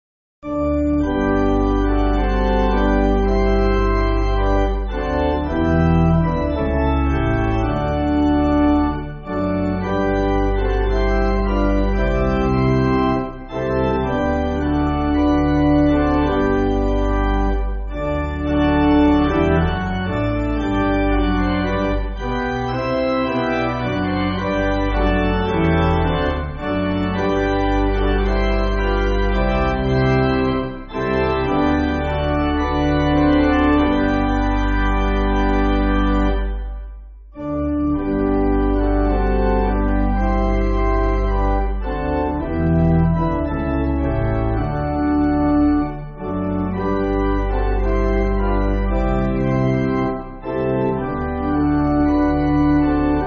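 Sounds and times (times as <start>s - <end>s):
pipe organ church backing music: 0.4s - 53.2s.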